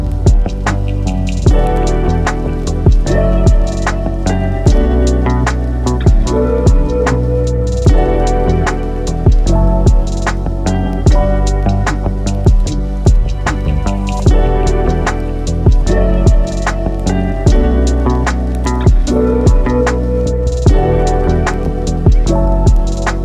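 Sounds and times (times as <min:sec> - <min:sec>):
lo-fi hip hop music: 0:00.0 - 0:23.2.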